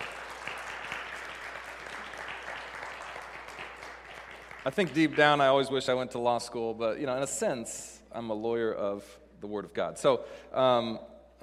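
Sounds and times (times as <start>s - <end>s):
audience applause: 0.0s - 5.5s
speech: 4.6s - 11.4s.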